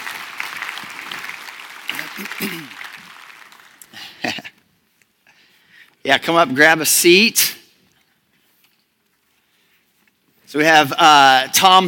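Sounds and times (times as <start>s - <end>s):
audience applause: 0.0s - 4.4s
speech: 2.2s - 2.8s, 6.1s - 7.6s, 10.6s - 11.8s.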